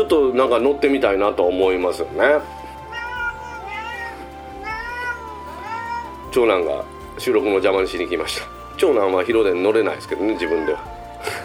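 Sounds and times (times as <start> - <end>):
speech: 0.0 - 2.6, 6.3 - 11.4
cat meowing: 2.9 - 6.1.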